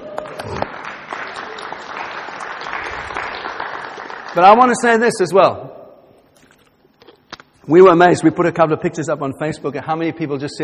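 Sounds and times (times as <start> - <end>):
audience applause: 0.0 - 4.8
speech: 4.4 - 5.7, 7.7 - 10.6.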